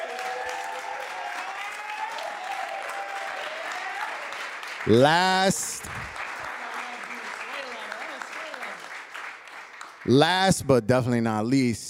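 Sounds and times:
cheers: 0:00.0 - 0:09.3
audience applause: 0:00.0 - 0:10.6
speech: 0:04.9 - 0:06.2, 0:10.1 - 0:11.8.

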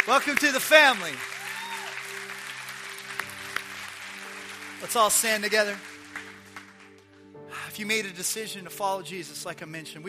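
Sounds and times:
church congregation applauding: 0:00.0 - 0:07.4
speech: 0:00.1 - 0:01.4, 0:04.8 - 0:05.9, 0:07.8 - 0:10.0.

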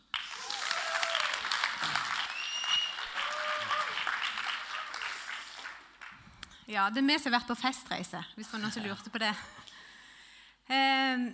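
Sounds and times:
audience applause: 0:00.0 - 0:06.2
speech: 0:06.7 - 0:09.7, 0:10.7 - 0:11.3.

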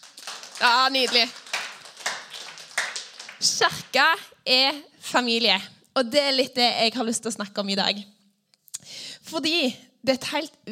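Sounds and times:
audience clapping: 0:00.0 - 0:04.1
speech: 0:00.6 - 0:01.4, 0:03.4 - 0:08.2, 0:09.3 - 0:10.7.

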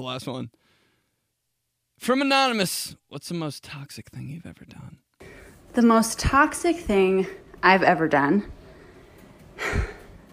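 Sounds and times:
speech: 0:00.0 - 0:00.7, 0:02.0 - 0:05.0, 0:05.8 - 0:08.6, 0:09.6 - 0:09.9
person panting while riding a stationary bike: 0:09.6 - 0:10.3.

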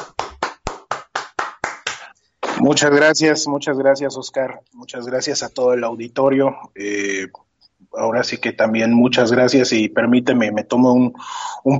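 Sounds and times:
audience clapping to welcome a guest: 0:00.0 - 0:02.6
speech: 0:02.6 - 0:11.7.

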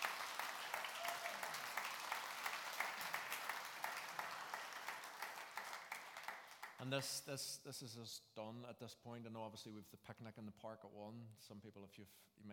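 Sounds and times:
audience applause: 0:00.0 - 0:06.8
speech: 0:06.8 - 0:12.5.

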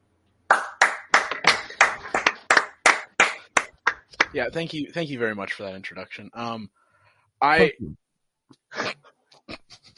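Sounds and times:
hand clapping: 0:00.5 - 0:04.5
speech: 0:04.3 - 0:06.8, 0:07.4 - 0:08.0.

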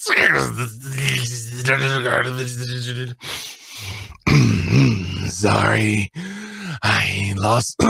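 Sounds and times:
voice imitating dial-up modem noises and roaring: 0:00.0 - 0:03.3, 0:04.1 - 0:07.0
speech: 0:00.0 - 0:04.0, 0:05.3 - 0:06.2, 0:07.0 - 0:07.8.

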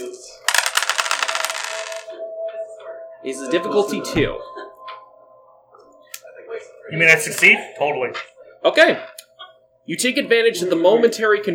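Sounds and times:
dice being rolled: 0:00.5 - 0:02.1
speech: 0:03.2 - 0:04.6, 0:06.9 - 0:09.1, 0:09.9 - 0:11.5.

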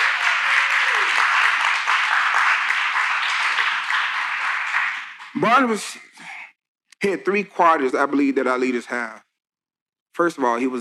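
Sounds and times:
audience clapping: 0:00.0 - 0:05.8
speech: 0:05.4 - 0:06.3, 0:07.0 - 0:09.2, 0:10.2 - 0:10.8.

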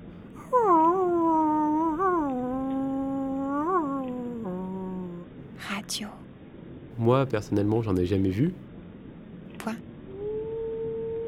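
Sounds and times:
person imitating a wolf howl: 0:00.4 - 0:05.3, 0:10.1 - 0:11.2
speech: 0:05.9 - 0:06.2, 0:07.0 - 0:08.7, 0:09.6 - 0:09.9.

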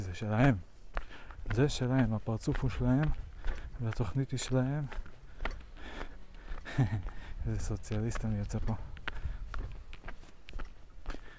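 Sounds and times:
footsteps of a person walking on a forest trail: 0:00.0 - 0:11.3
speech: 0:00.2 - 0:00.7, 0:01.5 - 0:03.2, 0:03.8 - 0:05.0, 0:06.8 - 0:08.9
laughter: 0:06.6 - 0:07.1.

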